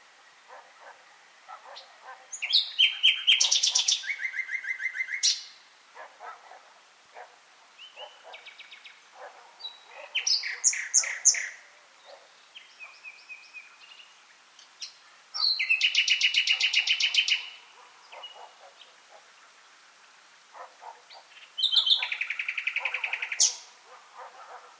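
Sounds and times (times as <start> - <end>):
common nightingale song: 1.6 - 5.6, 7.8 - 19.5, 20.6 - 23.7.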